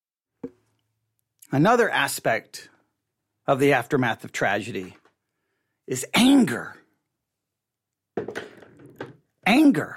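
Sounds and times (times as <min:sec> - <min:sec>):
speech: 0:01.5 - 0:02.7, 0:03.5 - 0:05.0, 0:05.9 - 0:06.8, 0:09.5 - 0:09.9
pencil dropping: 0:08.2 - 0:09.2.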